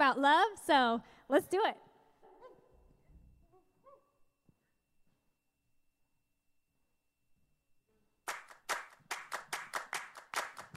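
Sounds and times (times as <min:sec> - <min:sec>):
speech: 0:00.1 - 0:01.9
audience clapping along to song: 0:08.3 - 0:10.7.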